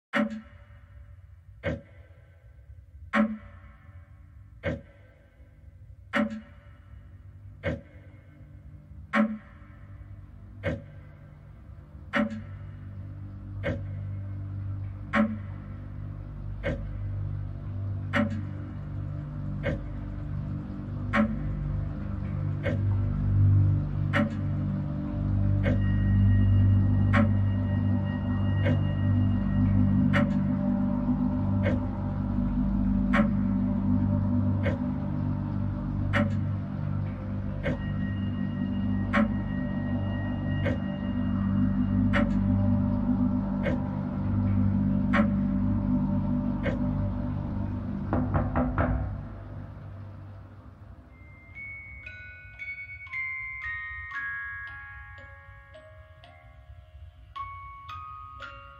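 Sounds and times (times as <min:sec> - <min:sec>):
ambience: 0:00.1 - 0:58.7.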